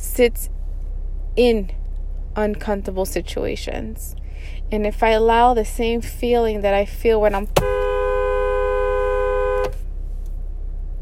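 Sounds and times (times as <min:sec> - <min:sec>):
low rumbling hum: 0:00.0 - 0:11.0
speech: 0:00.2 - 0:00.6, 0:01.4 - 0:01.8, 0:02.4 - 0:07.8
car horn honking: 0:07.5 - 0:09.9.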